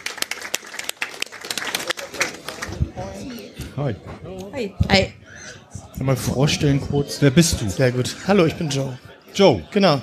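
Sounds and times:
audience applause: 0.0 - 2.9
speech: 3.8 - 10.0.

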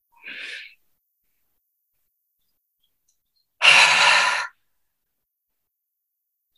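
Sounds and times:
short soft inhale and long airy exhale in a breathing exercise: 3.6 - 4.6.

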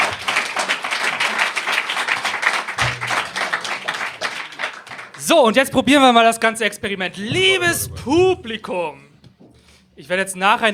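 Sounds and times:
audience applause: 0.0 - 5.3
speech: 5.3 - 9.1, 10.0 - 10.7.

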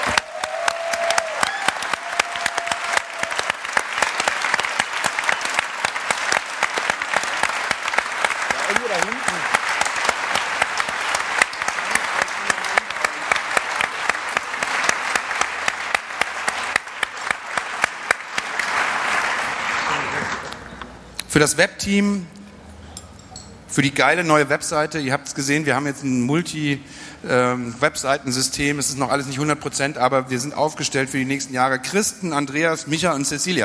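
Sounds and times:
roaring applause: 0.0 - 20.7
speech: 21.4 - 22.4, 23.8 - 33.6.

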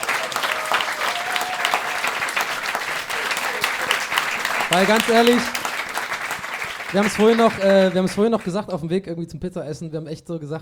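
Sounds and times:
audience applause: 0.0 - 8.5
speech: 4.7 - 5.6, 6.9 - 10.5.

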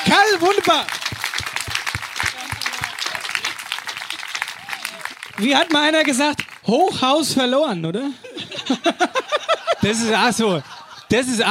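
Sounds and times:
applause: 0.0 - 6.7
speech: 0.1 - 1.0, 5.4 - 11.4
laughter: 2.4 - 5.2, 8.0 - 11.4.

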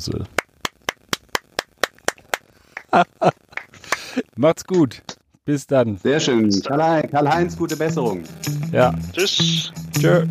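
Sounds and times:
speech: 0.0 - 0.4, 2.9 - 3.4, 4.4 - 10.3
people clapping: 0.4 - 4.2
laughter: 2.8 - 4.2.

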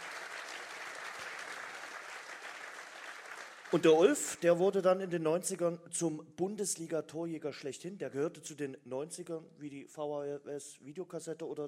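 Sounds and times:
crowd applauding: 0.0 - 4.4
speech: 3.7 - 11.6.

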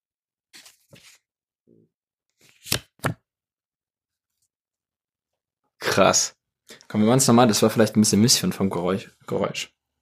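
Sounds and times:
playing cards riffling in card flourishes: 2.4 - 3.2
playing cards snapping in crisp bursts: 2.5 - 3.2
speech: 6.0 - 9.8.

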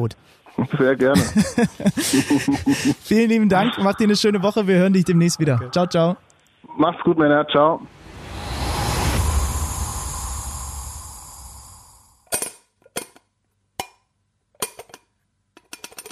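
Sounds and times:
speech: 0.0 - 8.0
laughter: 0.6 - 4.1
rushing whirring noise: 7.8 - 12.3.

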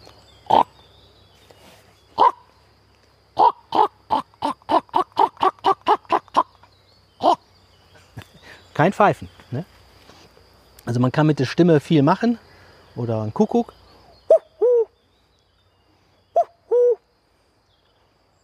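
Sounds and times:
human voice mimicking a common raven's call: 0.4 - 0.8, 2.2 - 2.4, 3.3 - 7.5
speech: 8.8 - 9.7, 10.9 - 12.4, 13.0 - 13.8.

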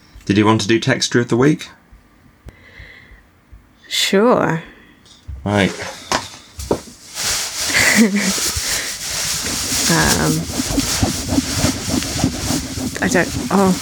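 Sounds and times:
speech: 0.3 - 1.8, 3.9 - 4.7, 5.4 - 6.0, 8.0 - 8.5, 9.5 - 10.9, 13.0 - 13.8
paper rustling and crinkling: 6.6 - 13.8.

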